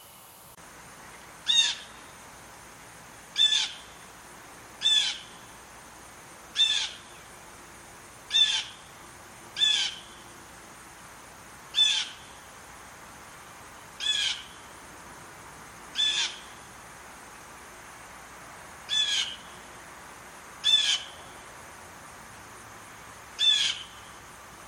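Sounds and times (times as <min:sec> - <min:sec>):
blue jay call: 0:01.4 - 0:02.1, 0:03.4 - 0:04.0, 0:04.8 - 0:05.4, 0:06.6 - 0:07.2, 0:08.3 - 0:08.9, 0:09.6 - 0:10.2, 0:11.7 - 0:12.4, 0:14.0 - 0:14.7, 0:15.9 - 0:16.6, 0:18.9 - 0:19.6, 0:20.6 - 0:21.4, 0:23.4 - 0:24.1.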